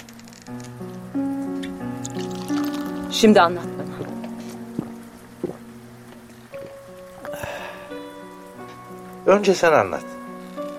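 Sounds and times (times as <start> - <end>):
drink poured from a freshly opened bottle: 1.5 - 8.0
speech: 3.2 - 3.7, 9.3 - 10.1.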